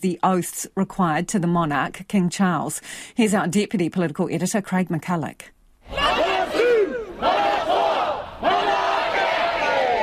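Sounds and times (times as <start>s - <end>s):
speech: 0.0s - 6.2s
hundreds of protesters chanting on Parliament's forecourt: 5.9s - 10.0s.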